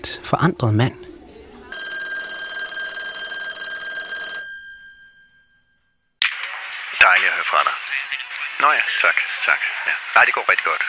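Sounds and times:
speech: 0:00.3 - 0:01.1, 0:07.1 - 0:10.8
telephone bell ringing: 0:01.7 - 0:06.1.

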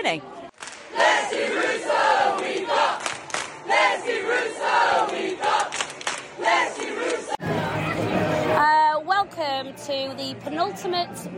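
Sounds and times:
speech: 0:00.0 - 0:03.0, 0:09.6 - 0:11.3
football crowd singing and chanting at a Borehamwood game: 0:00.9 - 0:08.5.

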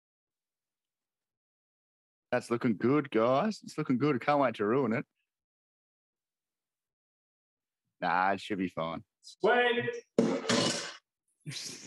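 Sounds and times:
speech: 0:02.3 - 0:05.2, 0:08.0 - 0:10.8, 0:11.4 - 0:11.8
tin slammed down: 0:10.2 - 0:11.0.

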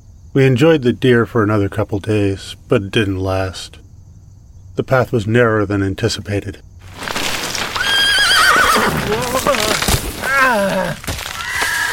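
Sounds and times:
speech: 0:00.4 - 0:03.8, 0:04.8 - 0:07.2
thumps and rustling: 0:06.8 - 0:07.9, 0:08.9 - 0:11.7
horse whinnying: 0:07.7 - 0:11.9.

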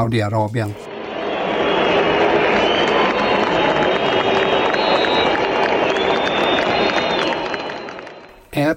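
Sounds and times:
speech: 0:00.0 - 0:00.9, 0:08.6 - 0:08.7
large stadium crowd roaring: 0:00.8 - 0:08.3
scattered applause: 0:00.8 - 0:08.3
stadium crowd whistling: 0:00.8 - 0:08.4.

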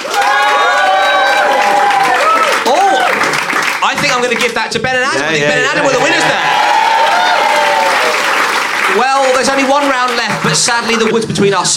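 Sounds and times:
whoops and cheering voices: 0:00.0 - 0:03.3, 0:05.6 - 0:08.4
audience applause: 0:00.0 - 0:11.3
speech: 0:04.2 - 0:06.8, 0:08.9 - 0:11.7.

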